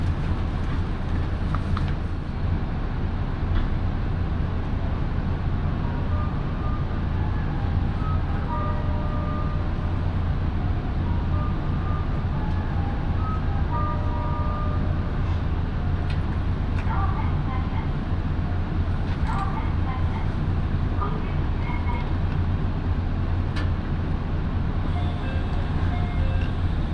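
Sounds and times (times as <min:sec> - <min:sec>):
local train on the Minobu Line rumbling: 0:00.0 - 0:26.9.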